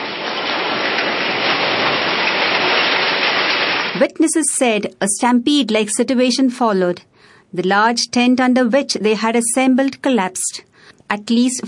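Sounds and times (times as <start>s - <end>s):
heavy rain pouring: 0.0s - 4.5s
speech: 4.0s - 11.6s.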